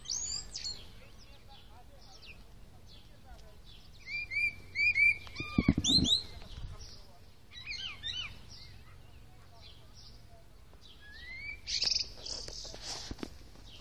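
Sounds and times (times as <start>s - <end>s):
common blackbird singing: 0.0s - 12.7s.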